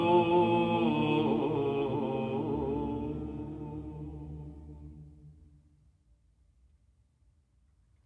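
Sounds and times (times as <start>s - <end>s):
monks chanting a canon on Mount Athos: 0.0s - 5.3s.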